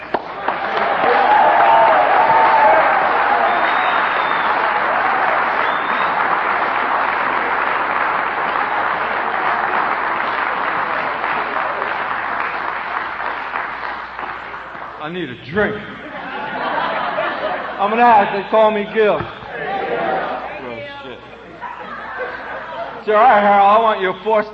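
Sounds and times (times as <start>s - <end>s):
crowd applause welcoming a speaker at a Narcotics Anonymous meeting: 0.0s - 24.5s
speech: 15.5s - 15.9s, 17.8s - 19.4s, 23.1s - 24.5s
laughter: 15.5s - 23.4s.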